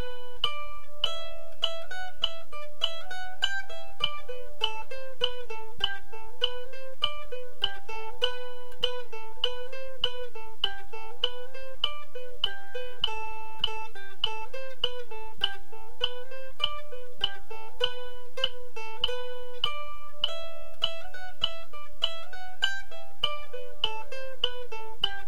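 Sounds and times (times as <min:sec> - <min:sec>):
mandolin playing a reel at 100 bpm: 0:00.0 - 0:25.2.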